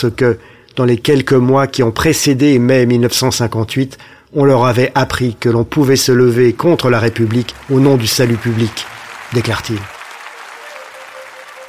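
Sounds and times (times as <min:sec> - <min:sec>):
speech: 0:00.0 - 0:10.0
applause in a parliamentary chamber: 0:06.8 - 0:11.6.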